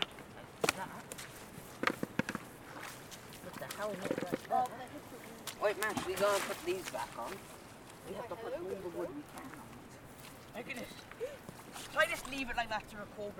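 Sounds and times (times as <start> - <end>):
outdoor soundscape at Bishopston and Pwll Du: 0.0 - 13.3.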